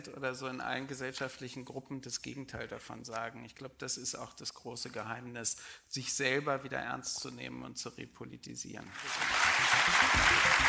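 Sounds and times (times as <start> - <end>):
speech: 0.0 - 10.6
audience applause: 8.9 - 10.6.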